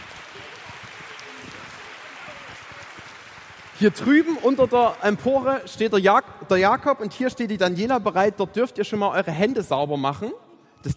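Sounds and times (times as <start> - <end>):
crowd murmur: 0.0 - 3.5
audience clapping: 0.0 - 5.8
speech: 3.8 - 10.9.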